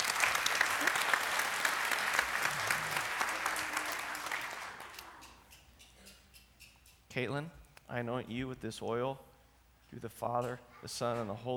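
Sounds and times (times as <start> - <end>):
round of applause: 0.0 - 5.5
speech: 7.2 - 9.3, 9.9 - 11.5.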